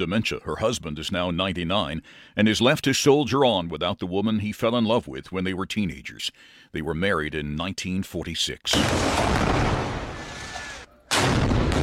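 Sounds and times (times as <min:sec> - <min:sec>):
speech: 0:00.0 - 0:09.5
Israeli tank firing at buildings in Gaza: 0:08.7 - 0:11.8.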